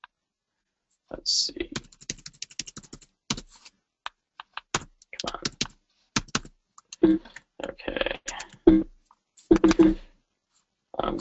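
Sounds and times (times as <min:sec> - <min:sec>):
speech: 0:01.2 - 0:01.6, 0:07.1 - 0:07.4
typing on a computer keyboard: 0:01.8 - 0:03.5, 0:04.4 - 0:07.0, 0:08.3 - 0:08.7, 0:09.5 - 0:10.0.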